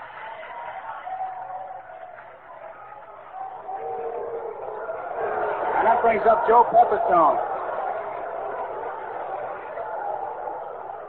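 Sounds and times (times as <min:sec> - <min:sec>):
large stadium crowd roaring: 0:00.0 - 0:11.0
speech: 0:06.0 - 0:07.5.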